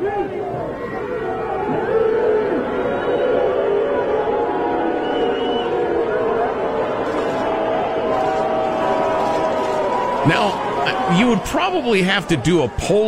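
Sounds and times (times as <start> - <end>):
stadium crowd booing: 0.0 - 13.0
speech: 11.2 - 13.0.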